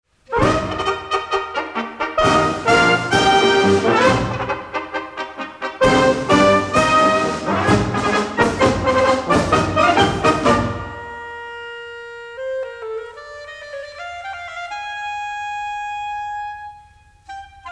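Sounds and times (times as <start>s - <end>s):
fanfare greetings: 0.3s - 12.4s.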